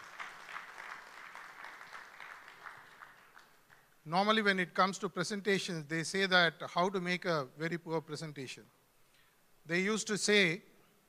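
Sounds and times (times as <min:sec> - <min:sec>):
audience applause: 0:00.0 - 0:03.9
speech: 0:04.0 - 0:08.8, 0:09.7 - 0:10.7.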